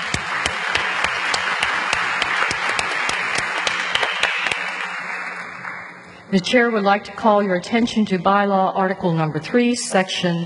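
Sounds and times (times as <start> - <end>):
audience applause in a room: 0.0 - 6.0
speech: 6.3 - 10.4.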